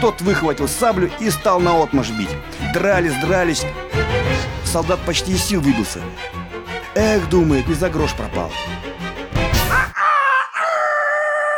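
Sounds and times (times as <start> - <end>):
speech: 0.0 - 6.4, 7.0 - 8.8
rooster crowing: 10.0 - 11.5.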